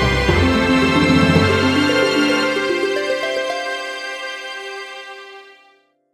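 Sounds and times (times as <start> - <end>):
fanfare: 0.2 - 4.5.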